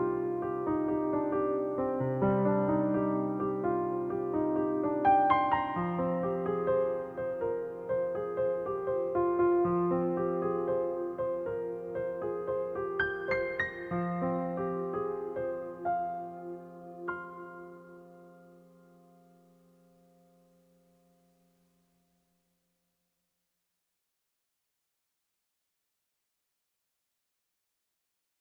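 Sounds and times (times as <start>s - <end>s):
healing piano music: 0.0s - 21.9s.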